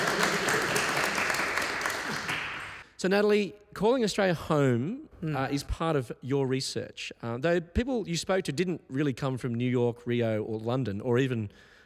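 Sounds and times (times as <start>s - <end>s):
crowd clapping: 0.0s - 2.9s
speech: 3.0s - 11.7s.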